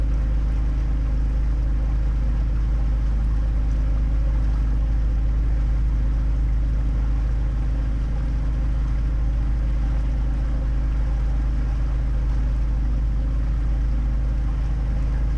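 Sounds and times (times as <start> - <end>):
water heard from barge cabin: 0.0 - 15.3
barge engine heard from cabin with windows semi closed: 14.1 - 15.3.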